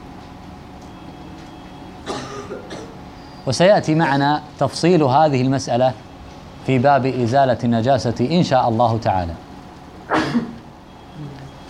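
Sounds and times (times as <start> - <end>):
speech: 2.5 - 9.4
person sneezing: 10.1 - 10.6.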